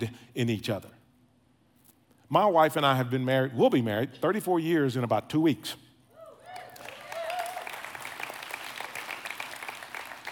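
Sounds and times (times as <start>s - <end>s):
speech: 0.0s - 1.0s, 2.3s - 5.8s
person cheering: 6.2s - 7.9s
audience applause: 6.6s - 10.3s.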